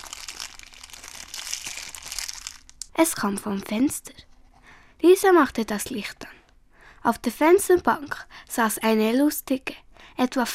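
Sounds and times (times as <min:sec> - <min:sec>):
dry rustling and crinkling: 0:00.0 - 0:03.0
speech: 0:03.0 - 0:04.3, 0:05.0 - 0:06.3, 0:07.0 - 0:10.5.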